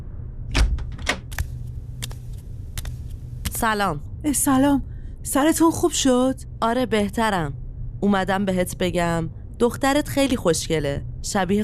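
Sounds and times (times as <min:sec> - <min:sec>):
low steady hum: 0:00.0 - 0:11.6
door opening in a room: 0:00.5 - 0:01.4
speech: 0:03.6 - 0:11.6.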